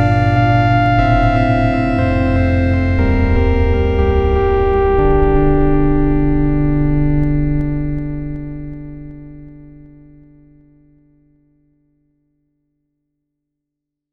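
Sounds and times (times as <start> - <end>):
CMI V spectral synth Italo music: 0.0 - 11.0.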